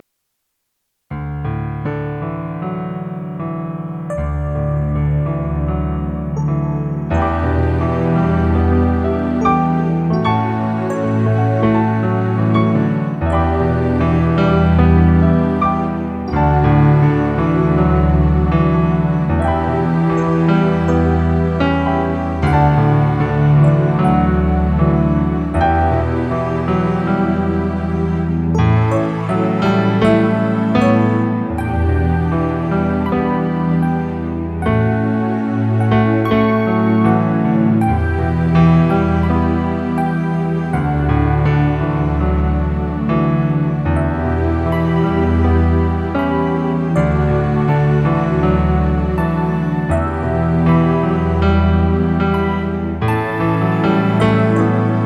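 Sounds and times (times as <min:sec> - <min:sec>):
instrumental accompaniment without vocal guide: 0:01.4 - 0:55.0.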